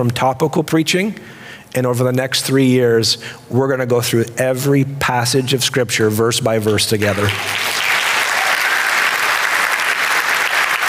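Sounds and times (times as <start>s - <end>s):
speech: 0.0s - 7.7s
audience clapping: 7.1s - 10.8s.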